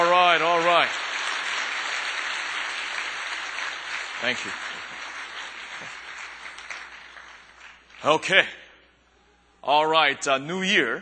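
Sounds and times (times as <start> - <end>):
audience applause: 0.0 - 8.0
speech: 0.8 - 1.1, 4.2 - 4.7, 8.0 - 8.6, 9.6 - 11.0.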